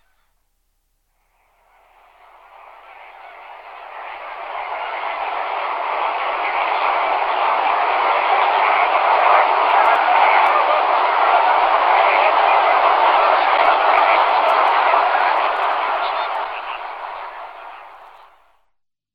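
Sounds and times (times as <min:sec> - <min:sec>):
Greater flamingo flock honking and chattering: 0:01.8 - 0:18.4.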